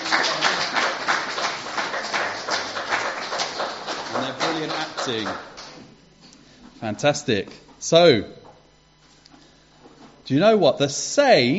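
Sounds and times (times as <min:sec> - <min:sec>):
round of applause: 0:00.0 - 0:05.8
speech: 0:05.1 - 0:05.5, 0:06.8 - 0:08.4, 0:10.3 - 0:11.5.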